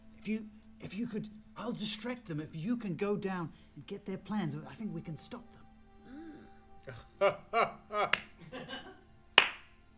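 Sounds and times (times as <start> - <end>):
speech: 0.2 - 5.6, 6.9 - 8.8
slow clapping: 8.1 - 8.4, 9.4 - 9.8.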